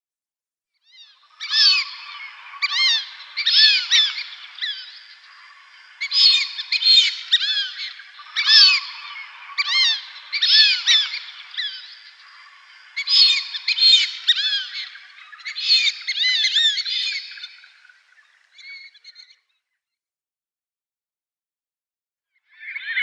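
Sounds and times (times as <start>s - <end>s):
Fulvous whistling duck flock calling: 1.1s - 19.4s.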